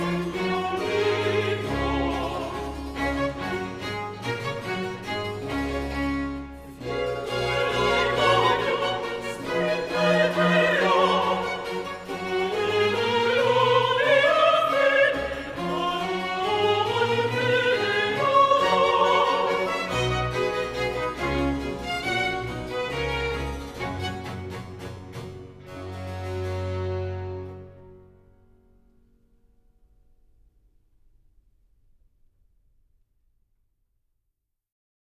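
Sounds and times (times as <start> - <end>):
choir singing: 0.0 - 27.6.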